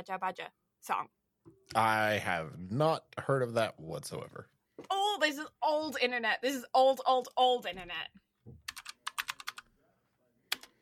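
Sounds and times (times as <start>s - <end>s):
speech: 0.0s - 8.2s
typing on a computer keyboard: 8.6s - 9.7s, 10.5s - 10.7s.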